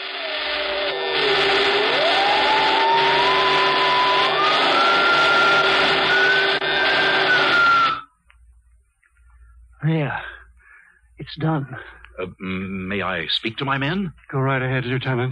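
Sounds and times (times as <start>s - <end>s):
electrical crackling and sparking of machine: 0.0s - 7.9s
speech: 9.8s - 10.2s, 11.3s - 15.2s.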